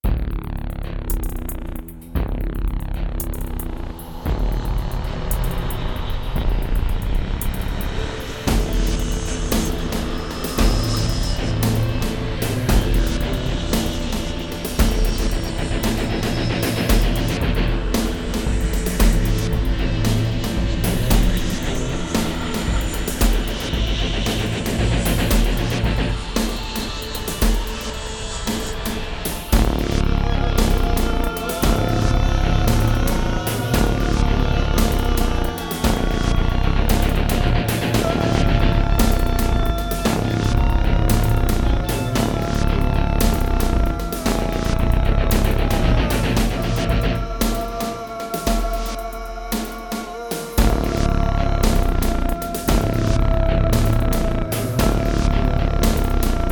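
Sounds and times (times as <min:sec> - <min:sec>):
goth rock music: 0:00.1 - 0:56.5.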